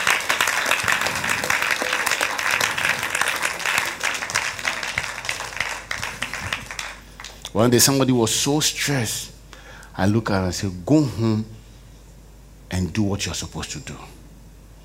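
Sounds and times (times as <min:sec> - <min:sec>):
audience clapping hands: 0:00.0 - 0:07.6
speech: 0:07.6 - 0:09.4, 0:10.0 - 0:11.6, 0:12.8 - 0:14.2.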